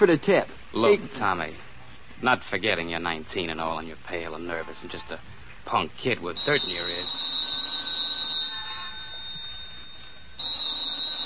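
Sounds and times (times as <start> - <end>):
speech: 0.0 - 7.2
telephone ringing with a shrill bell tone: 6.4 - 11.2.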